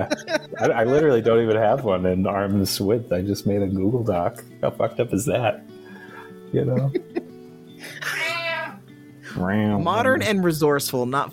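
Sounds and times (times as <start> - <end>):
laughter: 0.0 - 1.7, 6.0 - 7.3
speech: 0.0 - 5.8, 6.5 - 7.0, 9.4 - 11.3
cat meowing: 8.0 - 8.8.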